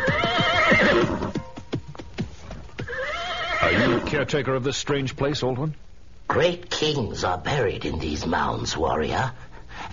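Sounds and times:
horse whinnying: 0:00.0 - 0:01.5, 0:02.8 - 0:04.2
horse hoof clops on hard ground: 0:00.0 - 0:03.6
speech: 0:04.1 - 0:09.9.

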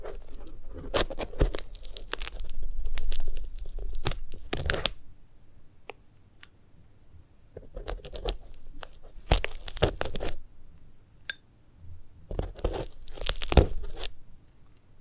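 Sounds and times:
dried sunflower head being handled, tearing and crunching: 0:00.0 - 0:05.0, 0:07.7 - 0:10.4, 0:12.3 - 0:14.2.

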